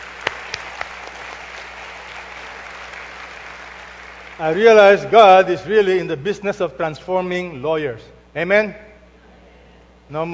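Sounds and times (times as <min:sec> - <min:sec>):
audience applause: 0:00.0 - 0:04.8
speech: 0:04.4 - 0:08.9, 0:10.1 - 0:10.3.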